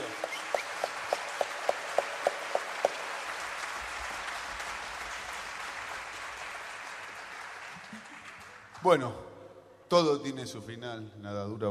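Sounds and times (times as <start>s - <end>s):
audience applause: 0.0s - 9.0s
speech: 8.8s - 9.3s, 9.9s - 11.7s.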